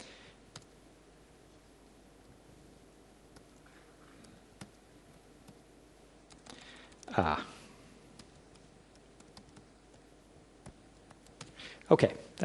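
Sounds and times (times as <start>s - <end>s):
steady hiss: 0.0s - 12.4s
keyboard clicks of typing a password: 0.5s - 0.7s, 6.3s - 7.1s, 8.2s - 10.0s, 10.6s - 11.6s
speech: 7.2s - 7.5s, 11.9s - 12.2s.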